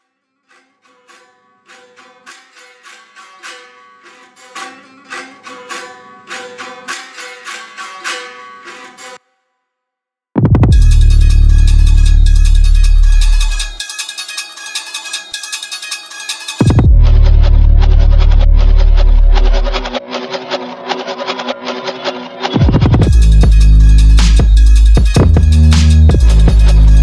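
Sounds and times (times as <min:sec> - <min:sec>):
trap beat: 0:10.4 - 0:27.0.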